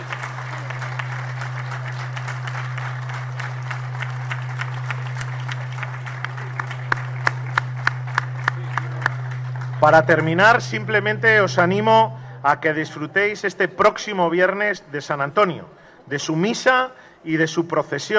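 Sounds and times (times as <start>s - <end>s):
audience applause: 0.0s - 10.7s
low electrical hum: 0.0s - 18.1s
speech: 9.8s - 18.1s.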